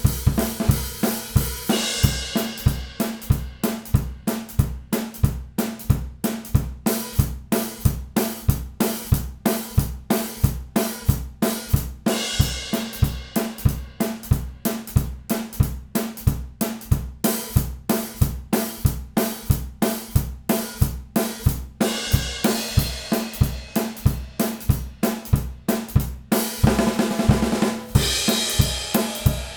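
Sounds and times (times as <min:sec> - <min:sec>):
drums in stereo: 0:00.0 - 0:29.5.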